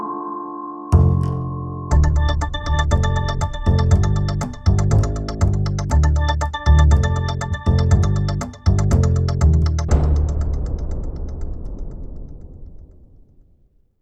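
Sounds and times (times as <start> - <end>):
quest music stinger: 0.9 - 12.5.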